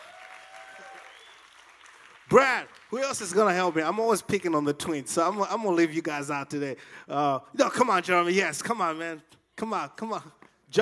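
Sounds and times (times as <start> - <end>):
audience clapping: 0.0 - 5.9
faint thin whistling tones: 1.0 - 1.5
speech: 2.3 - 10.8.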